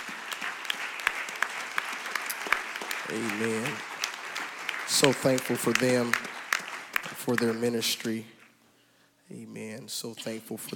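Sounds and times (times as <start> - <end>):
audience applauding: 0.0 - 8.4
speech: 3.1 - 3.9, 5.0 - 6.3, 7.2 - 8.4, 9.3 - 10.7.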